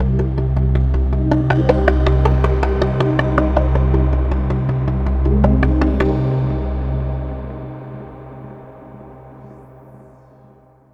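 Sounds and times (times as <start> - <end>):
ambience: 0.0 - 10.4.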